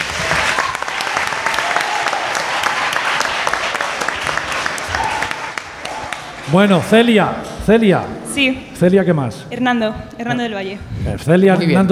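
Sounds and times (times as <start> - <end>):
crowd applause: 0.0 - 7.2
speech: 6.5 - 11.9.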